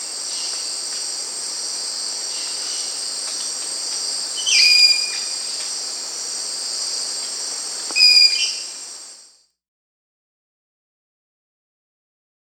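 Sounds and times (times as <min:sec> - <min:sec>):
black-capped parakeet Pyrrhura rupicola calling in South America: 0:08.0 - 0:08.6.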